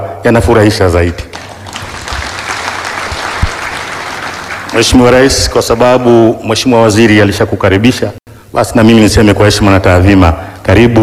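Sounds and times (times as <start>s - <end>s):
speech: 0.2s - 1.4s, 4.8s - 11.0s
applause at an official ceremony with the President present: 1.2s - 5.8s.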